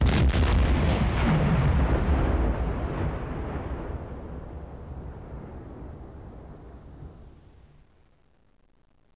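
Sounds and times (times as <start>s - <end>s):
ship's gun explosion: 0.0s - 4.3s.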